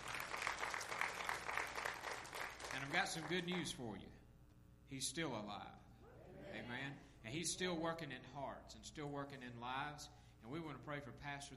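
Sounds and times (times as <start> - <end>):
church congregation clapping hands in praise: 0.0 - 3.8
speech: 2.8 - 4.2, 4.9 - 11.5.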